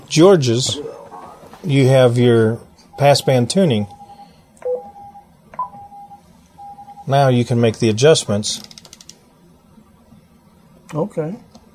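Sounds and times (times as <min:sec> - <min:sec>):
low hum: 0:00.0 - 0:11.7
speech: 0:00.1 - 0:01.0, 0:01.6 - 0:04.0, 0:07.1 - 0:08.7, 0:10.9 - 0:11.5
radio transceiver electronic confirmation beeps: 0:02.9 - 0:07.2.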